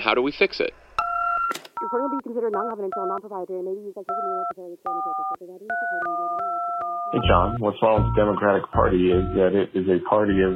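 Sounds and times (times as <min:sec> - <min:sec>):
speech: 0:00.0 - 0:00.8, 0:01.5 - 0:06.5, 0:07.1 - 0:10.5
voicemail beep tone: 0:01.0 - 0:03.4, 0:04.0 - 0:08.4
person talking over a telephone-quality line: 0:01.8 - 0:06.4, 0:07.1 - 0:10.5.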